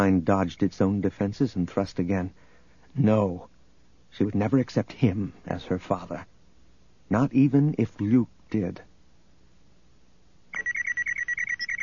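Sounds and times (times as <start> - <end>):
speech: 0.0 - 3.5, 4.1 - 6.3, 7.1 - 8.9
comlink beeping: 10.6 - 11.8.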